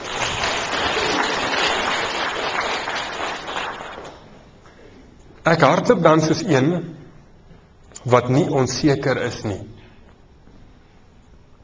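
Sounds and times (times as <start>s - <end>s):
audience applause: 0.0s - 4.4s
speech: 5.5s - 7.0s, 8.0s - 9.7s.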